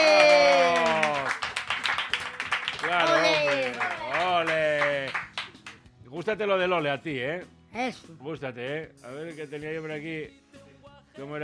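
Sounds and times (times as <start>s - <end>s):
rhythmic clapping: 0.0s - 6.0s
speech: 6.3s - 10.5s, 11.2s - 11.4s.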